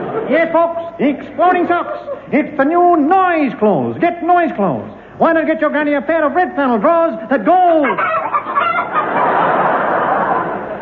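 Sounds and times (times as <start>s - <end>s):
speech: 0.3s - 8.2s
chicken cackling: 7.7s - 10.8s.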